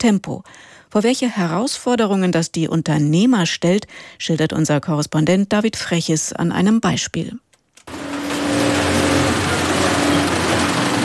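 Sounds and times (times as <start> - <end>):
speech: 0.0 - 7.5
industrial sewing machines stitching protective workwear: 7.9 - 11.0.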